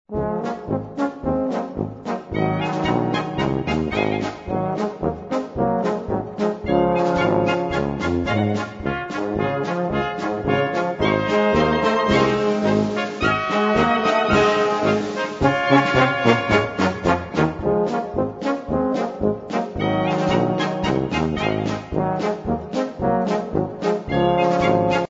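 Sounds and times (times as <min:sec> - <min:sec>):
polka music: 0:00.1 - 0:25.0.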